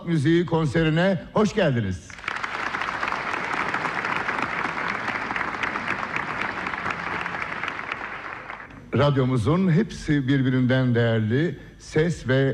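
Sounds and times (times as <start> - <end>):
speech: 0.0 - 2.2, 8.9 - 12.5
applause at a Turkish folk music concert: 2.1 - 8.8.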